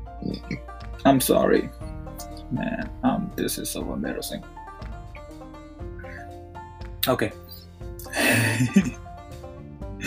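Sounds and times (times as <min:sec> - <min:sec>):
speech: 0:00.2 - 0:01.8, 0:02.5 - 0:04.6, 0:07.0 - 0:07.4, 0:08.3 - 0:09.0
person burping: 0:08.1 - 0:09.0.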